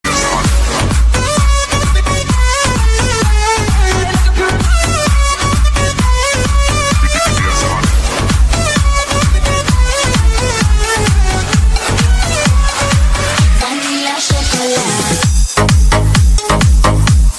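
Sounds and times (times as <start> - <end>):
party music mix: 0.0 - 17.3.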